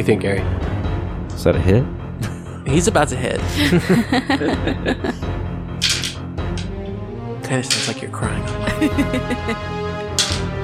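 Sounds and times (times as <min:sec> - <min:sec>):
speech: 0:00.0 - 0:00.7, 0:01.4 - 0:05.4, 0:07.5 - 0:09.8
laughter: 0:03.5 - 0:05.2, 0:08.4 - 0:09.8
dice rolling on a table: 0:05.8 - 0:06.7, 0:10.2 - 0:10.5.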